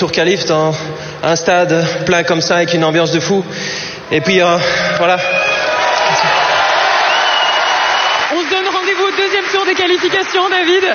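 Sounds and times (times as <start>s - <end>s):
speech: 0.0s - 5.5s, 9.7s - 10.9s
stadium crowd applause and cheering: 4.6s - 10.9s.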